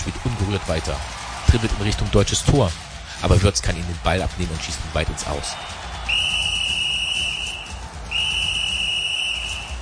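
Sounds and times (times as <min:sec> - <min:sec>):
speech: 0:00.0 - 0:05.8
referee's whistle blasts: 0:06.0 - 0:09.8.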